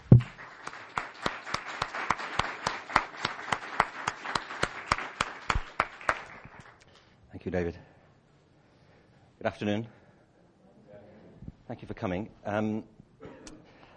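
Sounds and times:
audience applause welcoming a speaker at a talk: 0:00.0 - 0:06.8
speech: 0:07.4 - 0:07.9, 0:09.4 - 0:10.0, 0:11.7 - 0:12.9.

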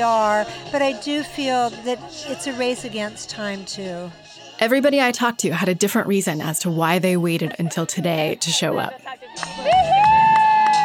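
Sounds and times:
speech: 0:00.0 - 0:10.0
group of teens clapping: 0:09.3 - 0:10.8
high-pitched whoop or whistle: 0:09.3 - 0:10.8.

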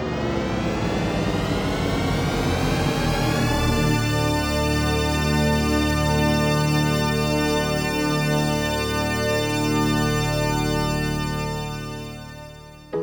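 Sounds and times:
audio logo of gliding tones swelling into a huge chord: 0:00.0 - 0:12.9.

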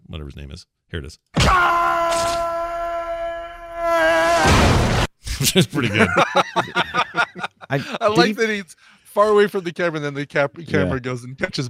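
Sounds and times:
speech: 0:00.1 - 0:02.5, 0:03.8 - 0:11.6
person yelling while falling: 0:01.4 - 0:04.7
laughter: 0:05.3 - 0:08.3.

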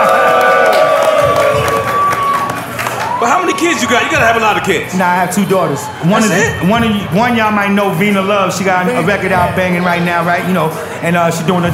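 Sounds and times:
crowd cheering and clapping: 0:00.0 - 0:06.6
speech: 0:03.6 - 0:11.7.

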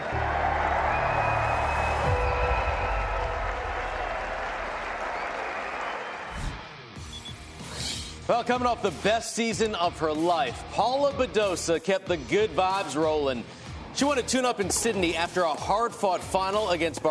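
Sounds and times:
large crowd applause: 0:00.0 - 0:06.9
speech: 0:08.3 - 0:17.0.

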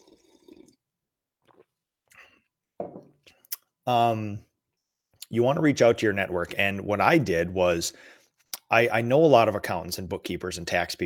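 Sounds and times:
sipping coffee: 0:00.0 - 0:02.3
speech: 0:03.9 - 0:04.5, 0:05.3 - 0:11.0.

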